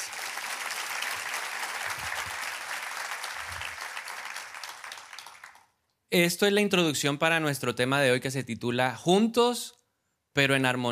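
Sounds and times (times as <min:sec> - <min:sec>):
audience applause: 0:00.0 - 0:05.7
speech: 0:06.1 - 0:09.8, 0:10.4 - 0:10.9.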